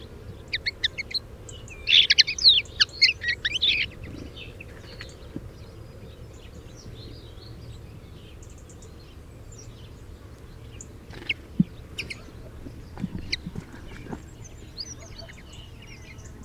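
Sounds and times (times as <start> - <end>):
common linnet Carduelis cannabina singing: 0.0 - 5.2, 11.1 - 16.4.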